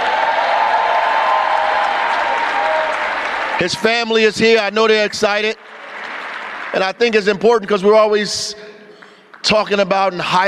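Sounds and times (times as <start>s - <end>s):
audience applause: 0.0s - 4.2s, 4.8s - 6.9s
speech: 3.6s - 5.7s, 6.7s - 8.6s, 9.4s - 10.4s.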